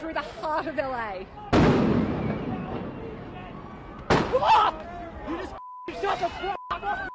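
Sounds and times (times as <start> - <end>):
crowd babble: 0.0 - 7.1
speech: 0.1 - 2.0, 4.3 - 7.1
LAPD rubber-bullet fire at protesters: 1.5 - 2.4
people shouting: 2.2 - 7.1
steady beep tone: 5.6 - 7.1.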